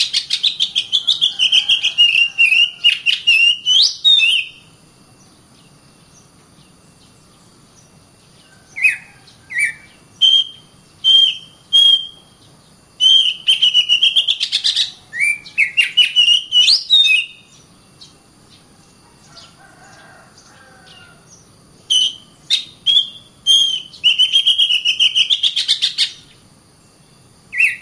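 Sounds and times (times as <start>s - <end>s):
Oriental magpie-robin singing clear whistled notes: 0.0s - 4.7s, 8.8s - 18.2s, 21.8s - 26.3s, 27.5s - 27.8s.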